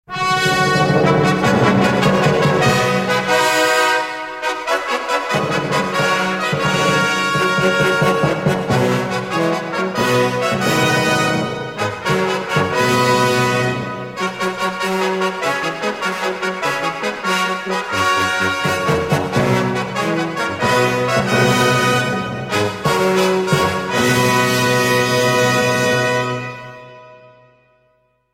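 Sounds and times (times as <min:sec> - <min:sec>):
long fanfare: 0:00.1 - 0:27.7.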